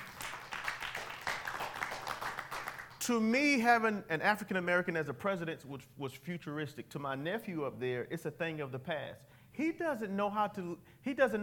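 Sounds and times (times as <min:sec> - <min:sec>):
audience clapping during a Black History Month talk: 0:00.0 - 0:03.0
speech: 0:03.0 - 0:11.4.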